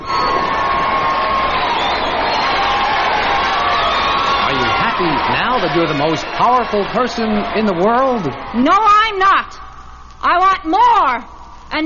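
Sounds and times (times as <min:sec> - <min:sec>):
crowd cheering: 0:00.0 - 0:09.5
speech: 0:05.6 - 0:11.8.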